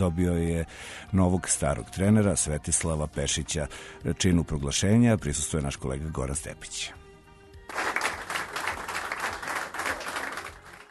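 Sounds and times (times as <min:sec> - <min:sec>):
speech: 0:00.0 - 0:07.0
applause greeting a basketball coach at Crvena zvezda club premises: 0:07.7 - 0:10.9.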